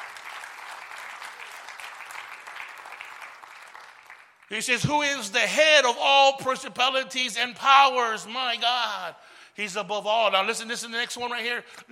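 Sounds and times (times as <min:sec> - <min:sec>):
audience clapping: 0:00.0 - 0:04.5
speech: 0:04.5 - 0:11.9.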